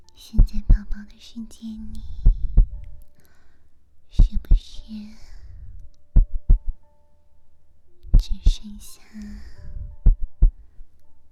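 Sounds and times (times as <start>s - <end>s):
faint rumble: 0.1s - 3.2s, 4.0s - 6.8s, 8.1s - 10.7s
speech: 0.2s - 2.3s, 4.1s - 5.3s, 8.6s - 9.8s
heartbeat thumps: 2.1s - 3.0s, 4.2s - 4.7s, 6.2s - 6.8s, 8.1s - 8.6s, 9.6s - 10.6s.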